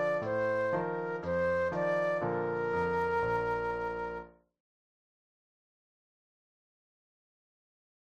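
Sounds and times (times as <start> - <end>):
flute solo: 0.0 - 4.5.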